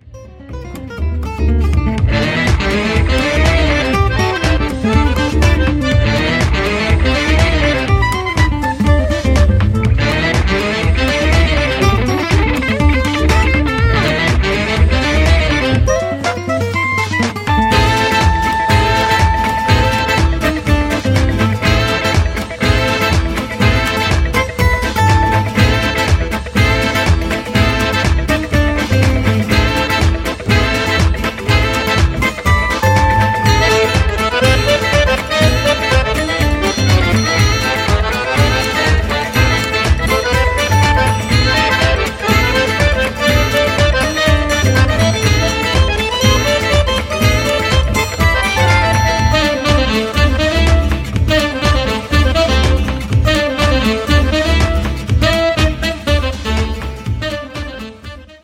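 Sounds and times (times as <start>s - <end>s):
cabaret swing music: 0.0s - 58.4s.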